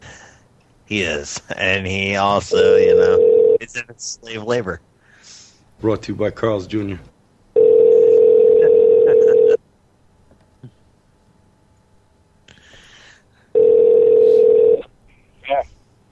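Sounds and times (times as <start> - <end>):
speech: 0.9 - 4.9, 5.8 - 7.1
steady electronic telephone tone on a call to voicemail: 2.5 - 3.6, 7.6 - 9.6, 13.6 - 14.8.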